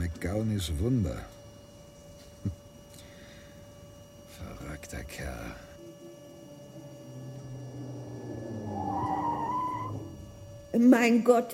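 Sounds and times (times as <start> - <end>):
speech: 0.1 - 1.4, 4.4 - 5.7, 10.7 - 11.5
car engine rumbling: 4.4 - 11.0
car tires screeching as the vehicle skids: 6.8 - 10.8.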